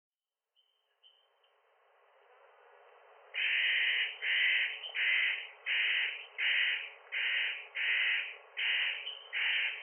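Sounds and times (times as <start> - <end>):
spotted nutcracker giving harsh rasping crow-like calls: 3.4 - 9.8.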